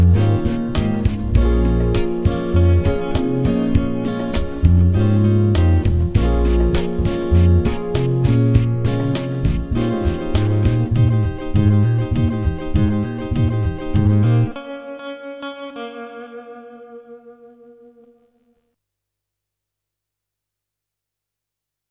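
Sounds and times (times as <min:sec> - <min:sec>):
bass grooves: 0:00.0 - 0:14.5.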